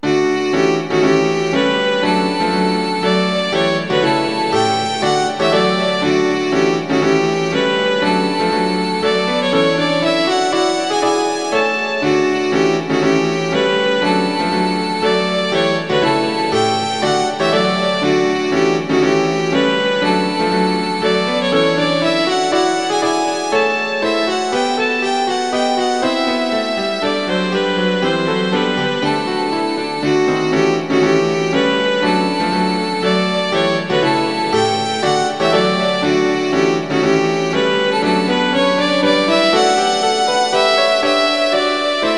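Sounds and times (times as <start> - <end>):
piano: 0.0 - 42.1
violin: 0.0 - 42.1.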